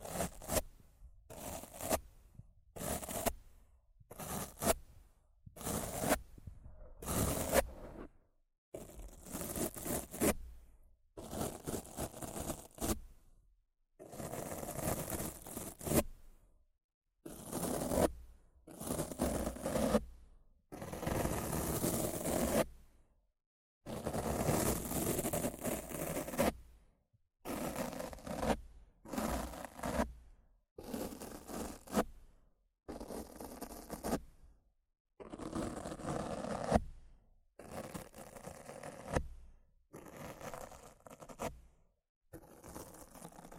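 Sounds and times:
rough scratching and brushing against a microphone: 0:00.0 - 0:02.1, 0:02.8 - 0:03.4, 0:04.1 - 0:04.9, 0:05.6 - 0:08.2, 0:08.8 - 0:10.5, 0:11.2 - 0:13.0, 0:14.1 - 0:16.1, 0:17.3 - 0:18.2, 0:18.8 - 0:20.0, 0:20.8 - 0:22.7, 0:23.9 - 0:26.6, 0:27.5 - 0:30.1, 0:30.8 - 0:32.1, 0:32.9 - 0:34.2, 0:35.2 - 0:36.8, 0:37.6 - 0:39.3, 0:40.0 - 0:41.6, 0:42.4 - 0:43.5.

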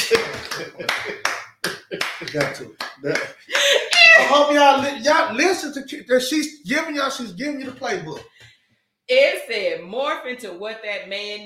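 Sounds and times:
hand clap sound effect: 0:00.0 - 0:04.9, 0:07.6 - 0:08.6
speech: 0:00.6 - 0:01.3, 0:02.3 - 0:08.5, 0:09.1 - 0:11.4.

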